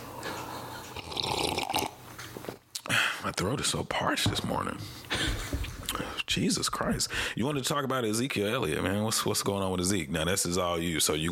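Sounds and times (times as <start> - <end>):
slurping sip of hot tea: 0.4 - 2.0
speech: 3.3 - 5.3, 6.3 - 11.2.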